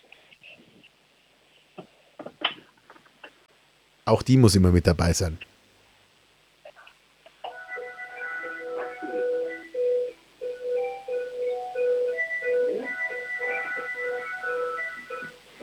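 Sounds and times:
speech: 0:04.1 - 0:05.5
doorbell playing a whole melody: 0:07.5 - 0:15.4.

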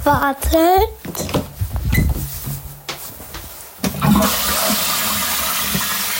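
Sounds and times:
speech: 0:00.0 - 0:01.4
toilet flushing: 0:03.9 - 0:06.1.

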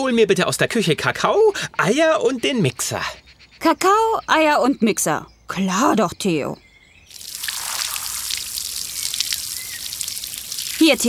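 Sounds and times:
speech: 0:00.0 - 0:06.6, 0:10.8 - 0:11.0
garden hose spraying water on bones: 0:07.1 - 0:11.0.

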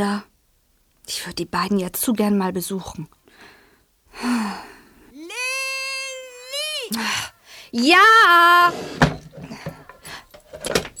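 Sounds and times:
speech: 0:00.0 - 0:00.3, 0:01.1 - 0:03.6, 0:06.9 - 0:09.1
drawer being closed: 0:08.7 - 0:10.9.

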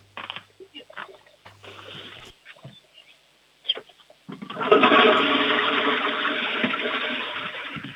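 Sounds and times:
toilet flush: 0:04.4 - 0:07.9.

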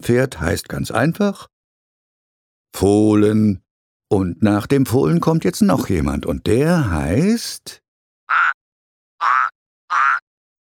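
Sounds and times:
speech: 0:00.0 - 0:01.5, 0:02.7 - 0:08.4
frog croaking: 0:08.3 - 0:08.6, 0:09.2 - 0:10.3.

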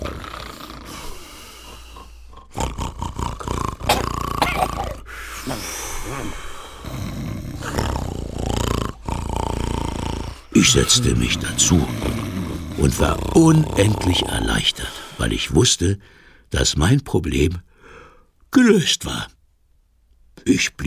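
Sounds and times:
several people snoring: 0:00.0 - 0:15.6
speech: 0:10.6 - 0:12.2, 0:12.8 - 0:17.7, 0:18.5 - 0:19.4, 0:20.4 - 0:20.8.

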